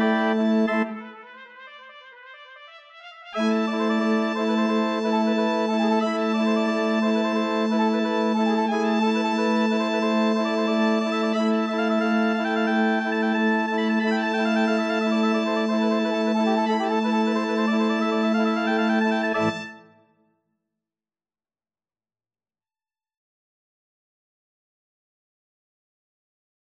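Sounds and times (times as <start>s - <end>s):
organ: 0.0s - 1.0s, 3.4s - 19.8s
vivace trumpet solo: 0.0s - 20.0s.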